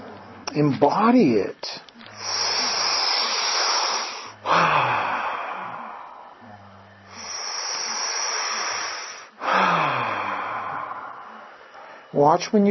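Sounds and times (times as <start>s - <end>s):
speech: 0.5s - 2.5s, 12.2s - 12.6s
deep breathing during a guided breathing meditation: 2.0s - 12.2s.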